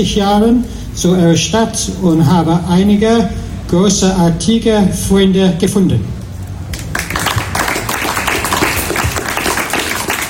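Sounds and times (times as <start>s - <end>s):
speech: 0.0s - 6.2s
applause at festival: 6.7s - 10.2s.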